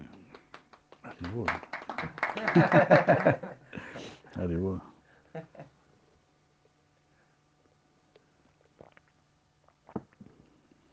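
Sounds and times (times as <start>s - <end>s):
applause: 0.0s - 3.5s
speech: 1.2s - 5.7s
laughter: 2.0s - 3.6s.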